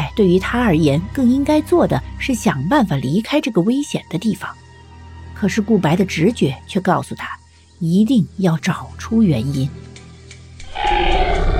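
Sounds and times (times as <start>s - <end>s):
speech: 0.2s - 4.6s, 5.4s - 9.8s
zombie roar: 10.7s - 11.5s.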